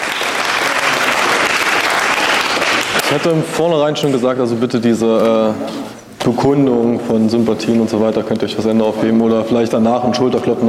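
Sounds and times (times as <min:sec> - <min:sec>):
audience applause at an anti-fascist conference in Cologne: 0:00.0 - 0:03.4
speech: 0:03.1 - 0:10.6.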